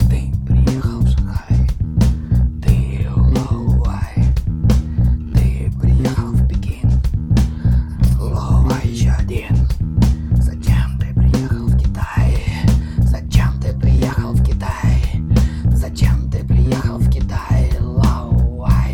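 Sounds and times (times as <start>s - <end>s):
blues music: 0.0s - 18.9s.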